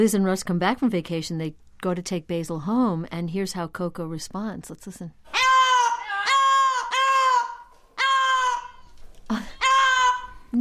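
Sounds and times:
speech: 0.0s - 5.4s
parrot screaming in loud harsh squawks: 5.3s - 10.5s.

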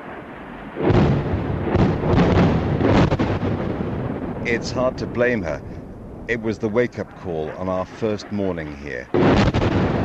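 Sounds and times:
explosions from NATO air strikes bombing Libya: 0.0s - 10.0s
speech: 4.5s - 9.9s.

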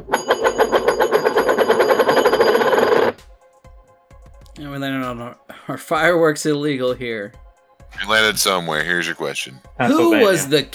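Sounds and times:
coin spinning on a hard surface: 0.1s - 3.2s
speech: 4.8s - 10.7s.

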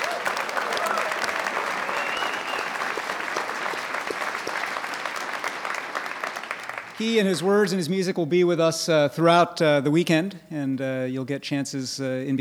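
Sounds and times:
audience round of applause: 0.0s - 7.6s
speech: 7.0s - 12.3s.

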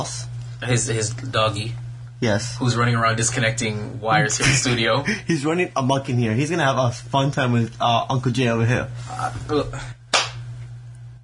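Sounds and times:
speech: 0.0s - 10.0s
sarcastic hand clap: 10.1s - 10.4s.

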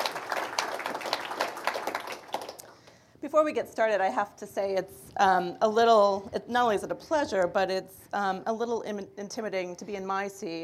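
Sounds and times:
audience applause welcoming an author at a book event: 0.0s - 2.7s
speech: 3.2s - 10.6s.

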